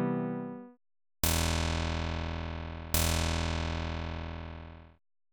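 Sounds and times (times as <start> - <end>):
noise: 1.3 - 4.9.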